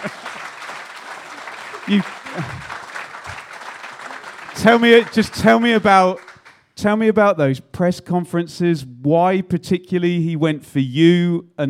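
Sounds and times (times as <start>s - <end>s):
round of applause: 0.0s - 6.7s
speech: 1.9s - 2.8s, 4.6s - 6.2s, 6.8s - 11.6s.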